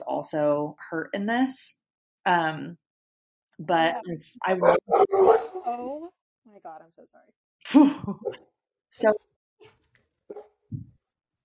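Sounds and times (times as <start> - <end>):
speech: 0.2 - 2.8, 3.6 - 9.3
dogs barking: 4.6 - 5.6.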